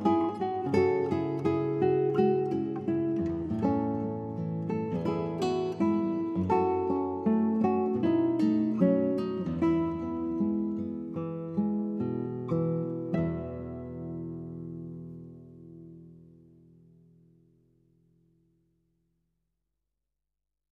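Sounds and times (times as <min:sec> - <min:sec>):
acoustic praise instrumental music: 0:00.0 - 0:16.3.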